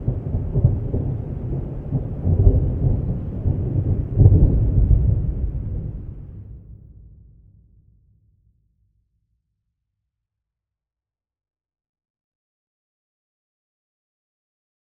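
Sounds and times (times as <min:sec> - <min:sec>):
thunder: 0:00.0 - 0:07.4.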